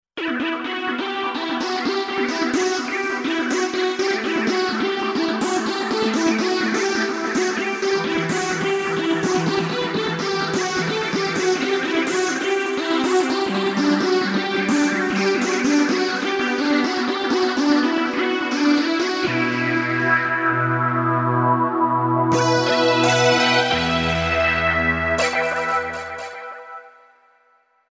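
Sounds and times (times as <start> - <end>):
Roland V-Synth synthesizer: 0.2 - 27.5.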